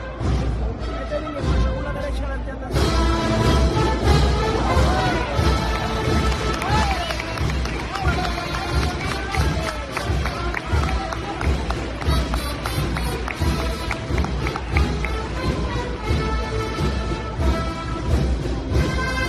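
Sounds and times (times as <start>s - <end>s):
dense murmur of voices and crowd noise: 0.0s - 19.2s
crowd applause during religious procession: 4.6s - 16.4s.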